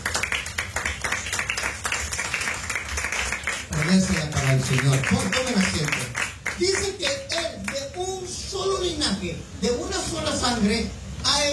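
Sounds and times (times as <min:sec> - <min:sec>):
audience applauding: 0:00.0 - 0:07.8
speech: 0:03.9 - 0:06.0, 0:06.6 - 0:07.4, 0:08.0 - 0:11.0.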